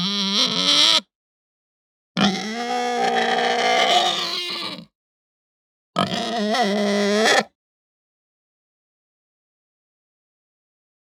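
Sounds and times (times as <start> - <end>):
Hampshire breed pig squealing: 0.0 - 1.1, 2.2 - 4.9, 6.0 - 7.5.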